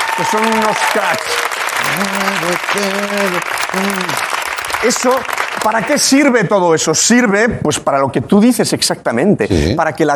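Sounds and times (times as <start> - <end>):
audience clapping: 0.0 - 6.0
speech: 0.2 - 10.1.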